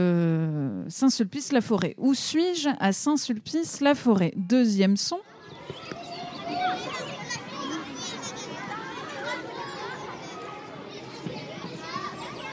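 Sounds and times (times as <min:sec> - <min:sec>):
speech: 0:00.9 - 0:05.8
children playing in a school playground in Saint-Sulpice-la-Forêt: 0:05.2 - 0:12.5.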